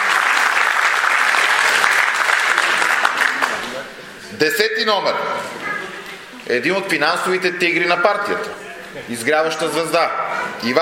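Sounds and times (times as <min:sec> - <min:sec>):
crowd clapping: 0:00.0 - 0:03.9
speech: 0:04.4 - 0:05.6, 0:06.5 - 0:10.8.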